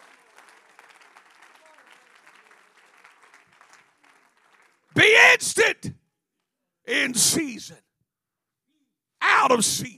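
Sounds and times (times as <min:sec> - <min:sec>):
audience clapping hands: 0:00.0 - 0:05.4
speech: 0:05.0 - 0:06.0, 0:06.9 - 0:07.8, 0:09.4 - 0:09.9.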